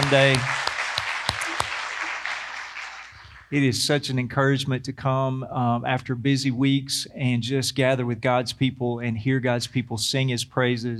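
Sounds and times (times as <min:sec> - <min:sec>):
audience applause: 0:00.0 - 0:03.5
speech: 0:00.1 - 0:00.6, 0:03.5 - 0:10.9.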